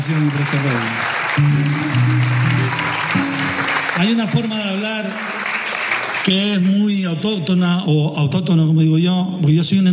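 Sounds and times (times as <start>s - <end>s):
speech: 0.0s - 5.4s, 6.3s - 9.9s
crowd clapping: 0.0s - 7.1s.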